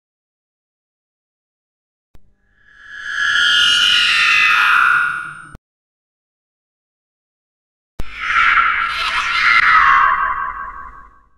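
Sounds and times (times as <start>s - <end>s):
scary horror sounds: 2.4s - 5.6s, 8.0s - 11.3s.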